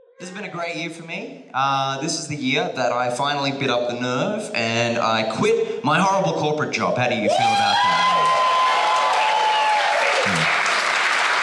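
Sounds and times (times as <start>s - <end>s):
speech: 0.2s - 8.4s
artificially generated applause sound effect: 7.3s - 11.4s.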